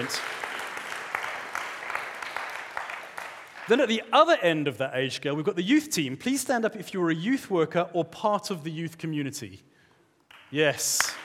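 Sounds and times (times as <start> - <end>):
speech: 0.0 - 0.4, 3.7 - 9.7, 10.5 - 11.2
crowd audience applause: 0.0 - 4.0.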